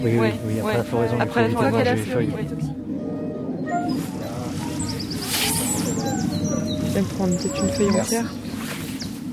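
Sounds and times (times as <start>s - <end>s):
speech: 0.0s - 2.9s, 6.9s - 8.6s
wren singing: 4.2s - 9.2s.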